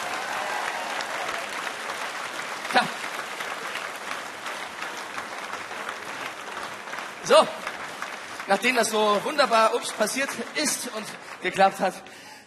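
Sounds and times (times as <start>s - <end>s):
audience applause: 0.0s - 12.1s
speech: 7.3s - 7.6s, 8.5s - 12.2s.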